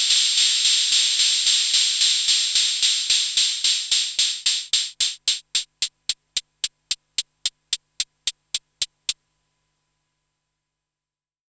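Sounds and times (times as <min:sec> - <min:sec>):
synth open hi-hat: 0:00.0 - 0:09.2.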